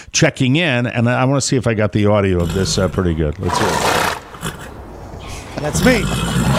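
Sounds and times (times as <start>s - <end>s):
speech: 0.2s - 4.0s, 5.6s - 6.4s
heavy breathing, out of breath: 4.8s - 5.7s.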